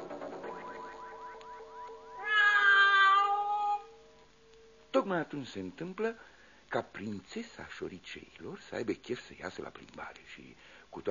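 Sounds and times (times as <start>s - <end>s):
cat meowing: 2.1s - 4.0s
speech: 5.0s - 11.0s.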